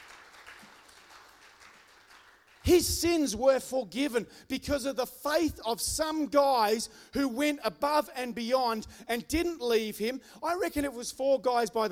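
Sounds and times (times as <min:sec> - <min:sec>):
faint clapping from an audience: 0:00.0 - 0:03.3
speech: 0:02.7 - 0:11.9.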